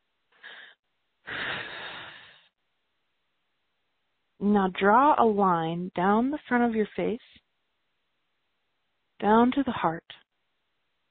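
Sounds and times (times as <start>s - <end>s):
big deep breath: 0.4s - 2.5s
speech: 4.4s - 7.4s, 9.2s - 10.2s.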